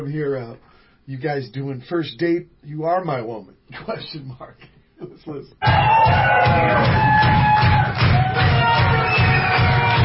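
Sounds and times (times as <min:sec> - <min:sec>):
speech: 0:00.0 - 0:07.7
live audience clapping along: 0:05.7 - 0:10.0.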